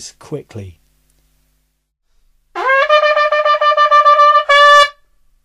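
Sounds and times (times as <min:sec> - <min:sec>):
doubled horn playing: 0:02.6 - 0:05.0.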